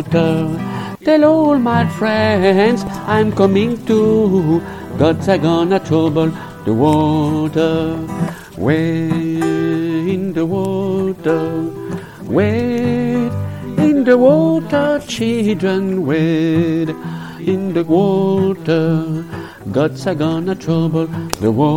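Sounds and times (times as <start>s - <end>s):
soprano singing a chorale: 0.0s - 21.7s.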